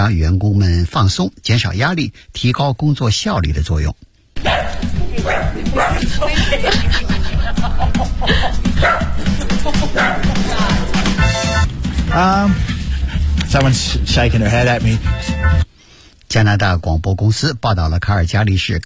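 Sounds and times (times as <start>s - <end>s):
speech: 0.0s - 11.4s, 12.1s - 12.7s, 13.5s - 15.6s, 16.3s - 18.8s
pet dogs in an office in Calgary, Canada barking and yipping: 4.4s - 7.0s, 8.4s - 13.5s
laughter: 5.0s - 11.2s.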